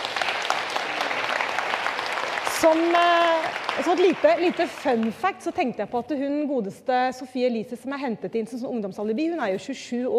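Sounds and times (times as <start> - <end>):
audience applause: 0.0 - 5.5
speech: 2.6 - 10.1.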